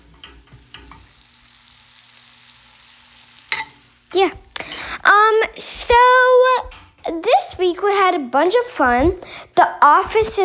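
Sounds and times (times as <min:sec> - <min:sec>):
chicken frying: 0:00.0 - 0:06.8
speech: 0:04.1 - 0:04.5, 0:05.3 - 0:10.4.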